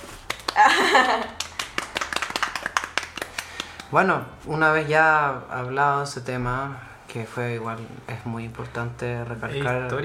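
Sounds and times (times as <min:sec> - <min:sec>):
applause: 0:00.2 - 0:03.9
speech: 0:00.6 - 0:01.4, 0:03.9 - 0:10.0.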